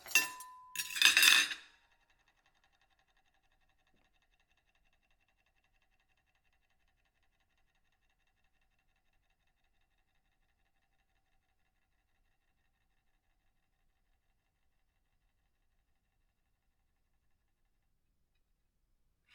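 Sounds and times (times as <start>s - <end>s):
ceramic plate: 0.0s - 1.6s.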